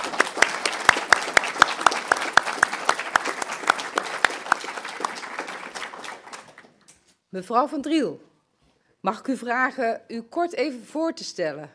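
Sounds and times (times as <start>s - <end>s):
applause in the hall: 0.0s - 6.9s
speech: 7.3s - 8.3s, 9.0s - 11.7s.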